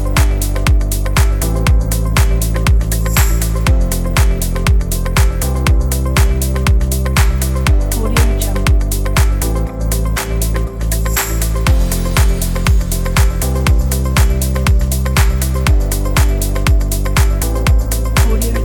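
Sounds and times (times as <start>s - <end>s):
fashion lounge music: 0.0s - 18.6s.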